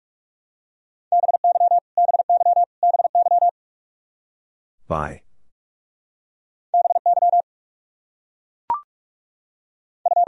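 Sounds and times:
Morse code at 45 wpm beeping: 1.1s - 3.5s, 6.8s - 7.4s, 10.0s - 10.2s
speech: 4.9s - 5.2s.

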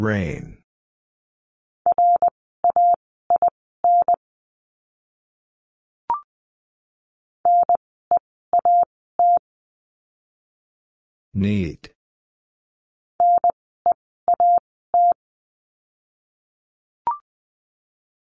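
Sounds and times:
speech: 0.0s - 0.6s, 11.4s - 11.9s
Morse code words at 20 wpm: 1.9s - 4.2s, 7.5s - 7.8s, 8.6s - 9.4s, 13.2s - 13.5s, 14.3s - 15.2s.

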